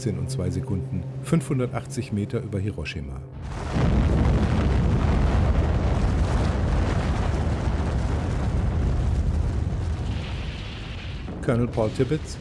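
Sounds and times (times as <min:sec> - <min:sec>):
speech: 0:00.0 - 0:04.3, 0:11.4 - 0:12.3
atomic bomb explosion over Hiroshima: 0:03.4 - 0:12.3.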